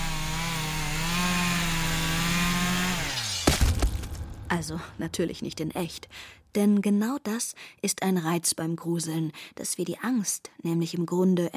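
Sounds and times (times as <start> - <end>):
chainsaw running: 0.0 - 4.1
speech: 4.5 - 11.5.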